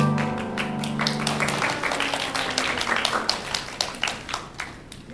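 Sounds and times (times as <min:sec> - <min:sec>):
duet song's final sustained notes: 0:00.0 - 0:02.0
audience applause after a duet: 0:00.0 - 0:05.0.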